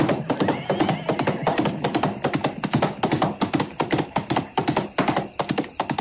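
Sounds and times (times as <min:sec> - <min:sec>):
galloping horse hoofbeats: 0:00.0 - 0:05.9.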